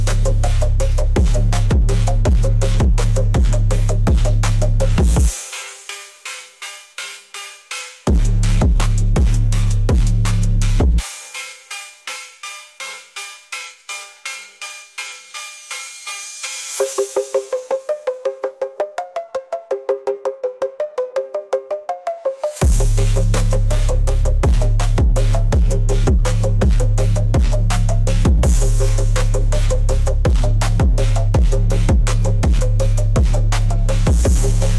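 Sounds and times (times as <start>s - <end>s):
phonk music with vinyl vibes: 0.0s - 34.7s.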